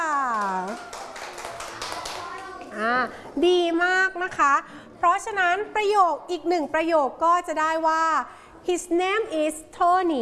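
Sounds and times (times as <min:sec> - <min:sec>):
classroom applause for a student: 0:00.2 - 0:02.8
speech: 0:03.4 - 0:10.2.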